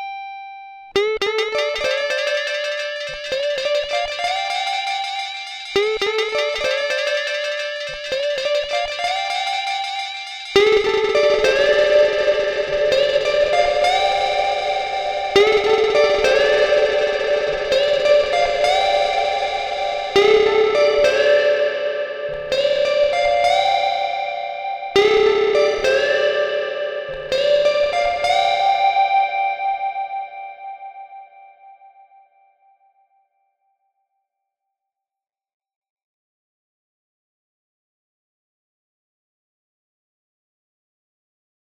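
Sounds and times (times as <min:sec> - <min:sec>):
electric guitar: 0:00.9 - 0:31.5.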